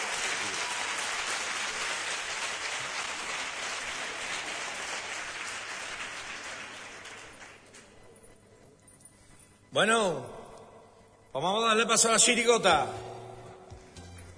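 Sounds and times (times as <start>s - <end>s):
audience applause: 0.0s - 8.0s
speech: 9.8s - 10.4s, 11.4s - 13.1s.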